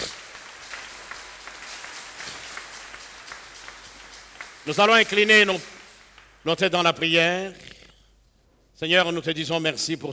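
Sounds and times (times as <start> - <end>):
church congregation applauding after a French-language sermon: 0.0 - 7.1
speech: 4.7 - 5.7, 6.4 - 7.7, 8.8 - 10.1.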